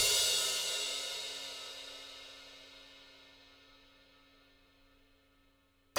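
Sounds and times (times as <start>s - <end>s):
downbeat percussion music: 0.0s - 0.6s.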